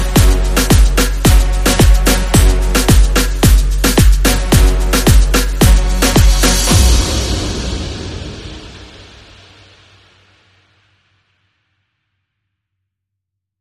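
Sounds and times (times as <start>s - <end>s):
moombah trap underscore music: 0.0s - 9.4s.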